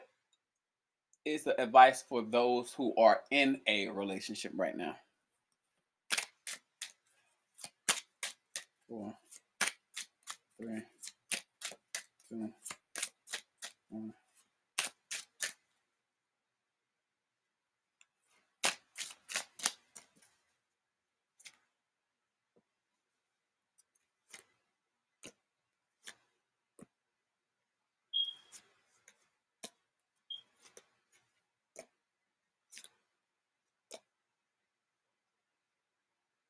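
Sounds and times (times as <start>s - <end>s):
speech: 1.2s - 5.0s, 8.9s - 9.2s, 10.6s - 10.9s, 12.3s - 12.7s, 13.9s - 14.2s
tarot cards being shuffled: 6.1s - 14.0s, 14.8s - 15.7s, 18.6s - 20.4s, 21.4s - 21.6s, 24.2s - 24.6s, 26.0s - 26.9s, 30.5s - 31.9s, 32.7s - 33.0s.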